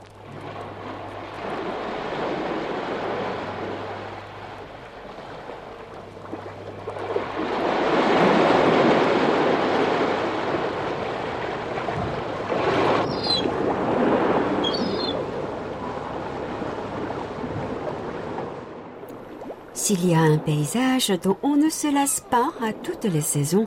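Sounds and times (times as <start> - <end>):
sea waves washing against the coast of the Byeonsan Peninsula in South Korea: 0.0 - 23.6
wind: 0.0 - 23.6
speech: 19.9 - 23.6.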